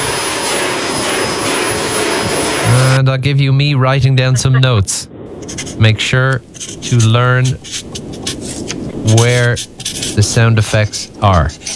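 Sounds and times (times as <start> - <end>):
vacuum cleaner running: 0.0 - 2.6
speech: 3.1 - 8.0, 9.0 - 11.7.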